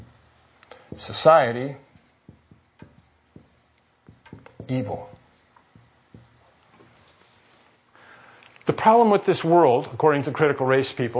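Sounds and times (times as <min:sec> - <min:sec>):
writing by hand: 0:00.0 - 0:07.3
speech: 0:01.0 - 0:01.9, 0:04.7 - 0:05.1, 0:08.8 - 0:11.1.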